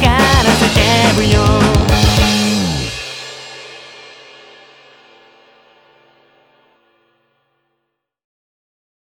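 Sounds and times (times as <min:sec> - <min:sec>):
backing track without guitar: 0:00.0 - 0:04.0.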